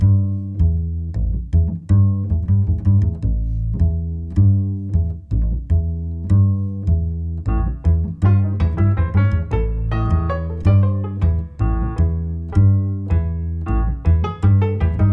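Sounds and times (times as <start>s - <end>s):
jazz double bass: 0.0s - 15.1s
jazz piano: 7.4s - 15.1s.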